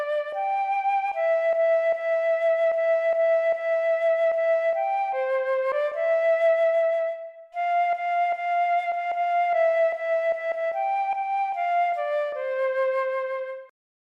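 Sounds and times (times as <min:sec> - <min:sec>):
flute in the key of C: 0:00.0 - 0:13.7.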